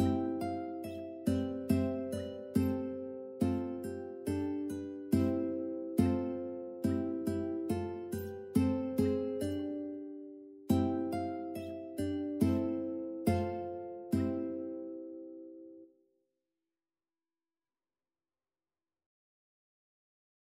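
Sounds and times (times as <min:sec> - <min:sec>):
ukulele: 0:00.0 - 0:15.8.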